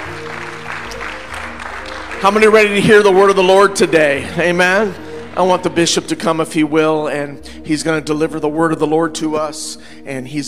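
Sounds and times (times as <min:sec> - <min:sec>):
audience hand clapping: 0:00.0 - 0:06.4
speech: 0:02.2 - 0:10.4.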